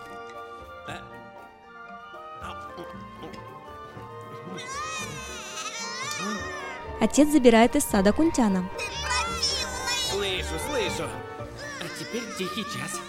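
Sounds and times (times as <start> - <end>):
infant girl crying: 4.4 - 7.2, 8.8 - 13.0
speech: 7.0 - 8.9, 10.5 - 13.0.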